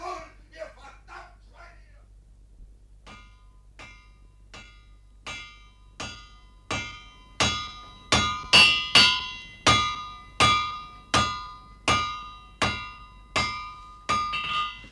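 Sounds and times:
blacksmith hammering on metal: 3.1s - 14.9s.

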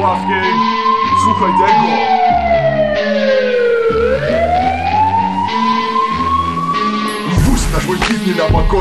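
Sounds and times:
speech: 0.0s - 0.5s, 1.2s - 2.1s, 7.8s - 8.7s
police car siren wailing: 0.0s - 8.0s.

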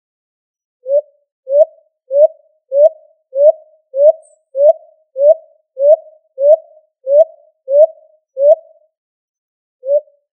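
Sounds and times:
pigeon or dove hooting: 0.9s - 8.6s.

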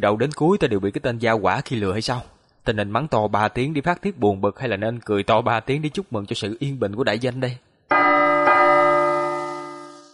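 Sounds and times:
speech: 0.0s - 8.1s
large bell tolling from the council hall: 7.9s - 10.1s.

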